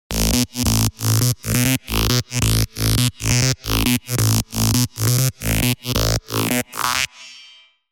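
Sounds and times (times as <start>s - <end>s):
Serum 2 rolling synth bass: 0.1s - 7.3s.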